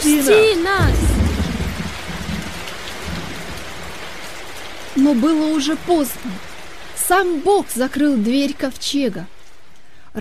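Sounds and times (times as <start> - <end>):
speech: 0.0 - 1.0, 5.0 - 6.5, 7.1 - 9.3
heavy rain: 0.0 - 10.2
thunder: 0.4 - 4.1.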